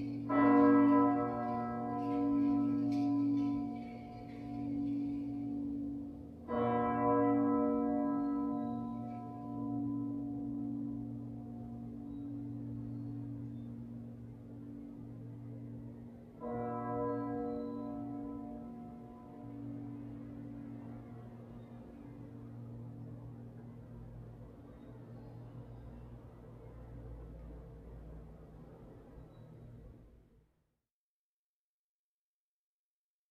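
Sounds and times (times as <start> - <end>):
cathedral bell in B ringing: 0.0 - 26.1.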